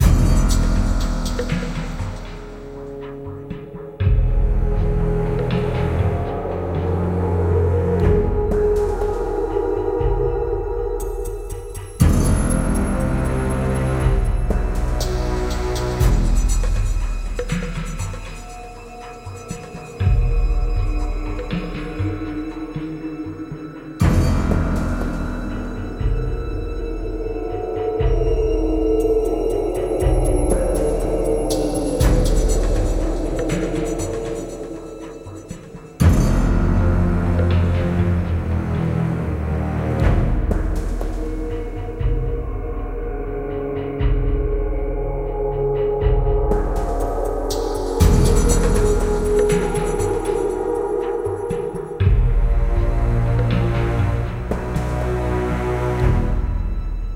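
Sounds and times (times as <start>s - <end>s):
tense music, alternate version: 0.0s - 57.1s.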